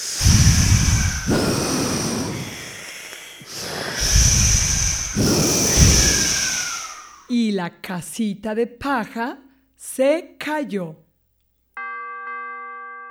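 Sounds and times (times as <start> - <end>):
voice imitating hard forceful blowing: 0.0 - 11.0
speech: 7.6 - 11.0.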